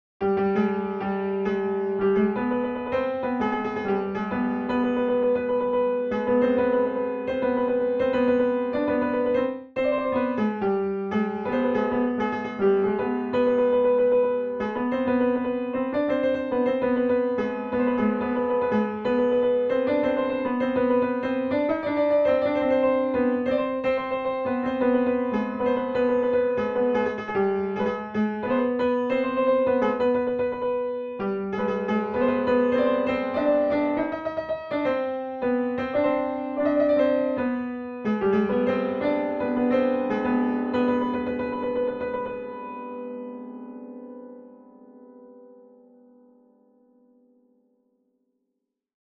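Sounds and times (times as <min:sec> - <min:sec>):
piano in Chahargah mode: 0:00.0 - 0:48.2.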